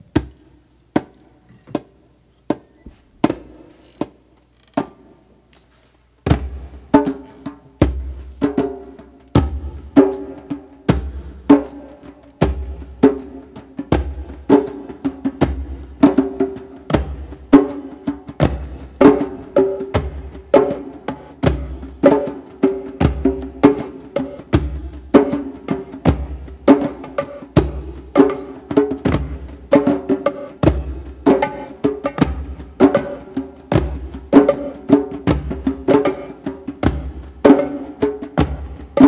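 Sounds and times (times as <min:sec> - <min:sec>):
shaman drum beat: 0:06.3 - 0:39.0.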